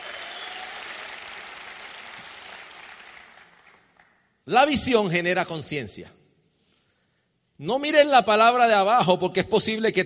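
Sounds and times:
audience applause: 0.0 - 4.0
speech: 4.5 - 6.2, 7.6 - 10.0.

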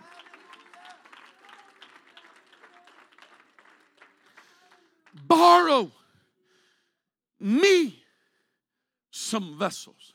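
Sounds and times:
audience hand clapping: 0.0 - 5.4
speech: 5.2 - 6.0, 7.4 - 8.0, 9.3 - 10.1.

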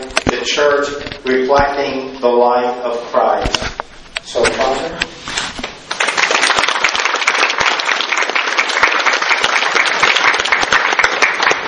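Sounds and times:
speech: 0.4 - 5.2
audience applause: 5.9 - 11.6.

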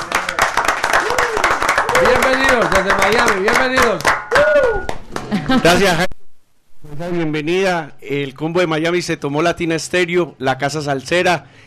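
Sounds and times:
small group applauding in a studio: 0.0 - 5.8
brief rising vocal whoop: 1.0 - 2.0, 4.3 - 5.0
speech: 2.0 - 6.1, 7.0 - 11.6.

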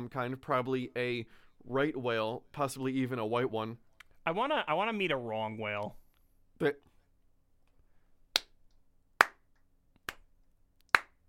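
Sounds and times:
speech: 0.1 - 6.0, 6.6 - 6.9
slow hand clapping: 8.3 - 11.2.

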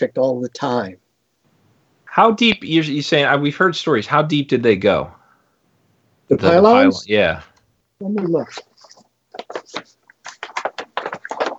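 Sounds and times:
speech: 0.0 - 1.0, 2.1 - 5.2, 6.3 - 8.7
paper rustling: 8.2 - 11.5.

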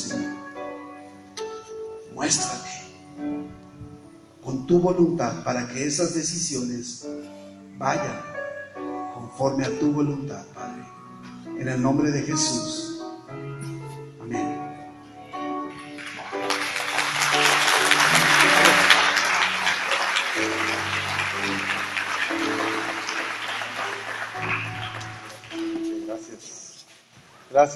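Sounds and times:
soft keyboard music: 0.0 - 27.7
speech: 2.2 - 2.7, 4.6 - 7.2, 7.8 - 8.3, 9.4 - 10.9, 11.6 - 12.8, 27.6 - 27.7
audience applause: 15.9 - 26.0.

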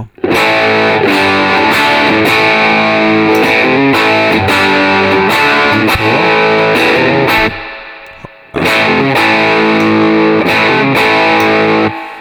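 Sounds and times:
electric guitar through distortion pedal playing chords: 0.0 - 12.2.

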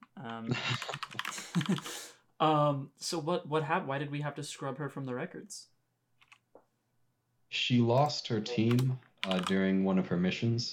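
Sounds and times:
speech: 0.2 - 5.7, 7.5 - 10.7
computer keyboard typing as notes are written down: 0.8 - 1.9, 8.6 - 9.6.

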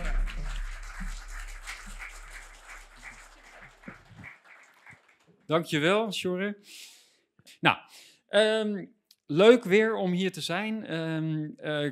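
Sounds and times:
audience applause: 0.0 - 5.3
speech: 5.5 - 6.9, 7.6 - 11.9.

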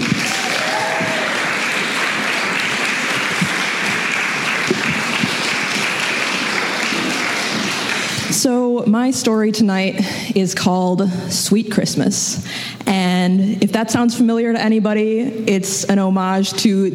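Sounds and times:
audience applause for a storyteller at a live storytelling event: 0.0 - 8.4
speech: 8.8 - 16.9.

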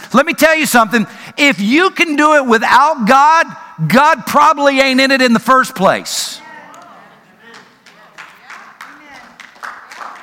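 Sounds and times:
speech: 0.1 - 6.4
audience clapping: 7.4 - 10.2.

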